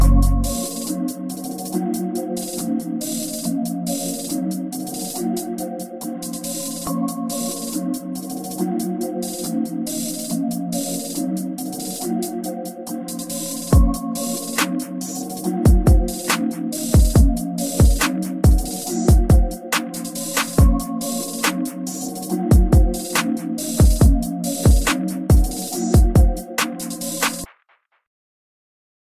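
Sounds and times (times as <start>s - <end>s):
slumped hip hop instrumental beat: 0.0s - 27.6s.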